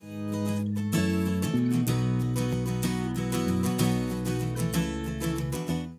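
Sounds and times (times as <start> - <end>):
acoustic music: 0.0 - 5.9.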